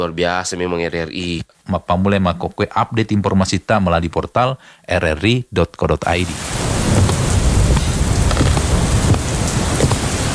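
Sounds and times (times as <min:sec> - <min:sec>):
speech: 0:00.0 - 0:07.1
heavy rain during a rainy season: 0:06.0 - 0:10.3.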